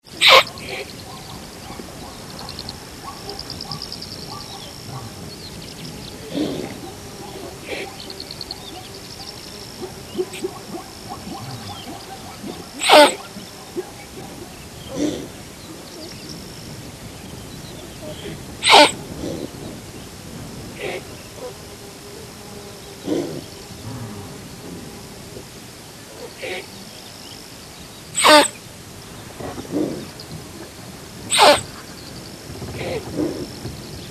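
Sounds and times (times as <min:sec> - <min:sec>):
quiet insect hiss: 0:00.0 - 0:34.0
Thomson's gazelle snorting: 0:00.2 - 0:08.6, 0:09.8 - 0:15.4, 0:23.0 - 0:24.9, 0:29.4 - 0:30.2, 0:31.3 - 0:31.7, 0:32.8 - 0:33.5.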